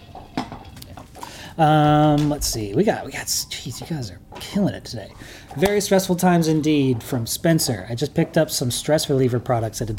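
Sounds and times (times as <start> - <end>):
water glass knocked over against a hard surface: 0.0 - 1.2
speech: 1.6 - 9.9.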